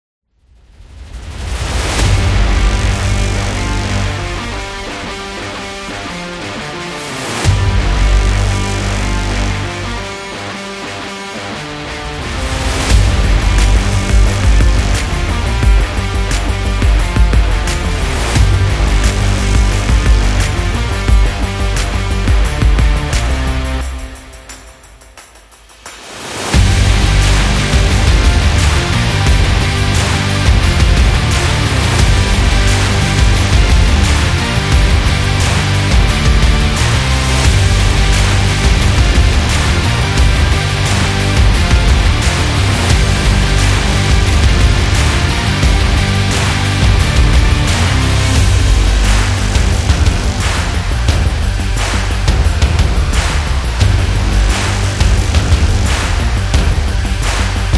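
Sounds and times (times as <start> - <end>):
rock big beat: 1.0 - 57.7.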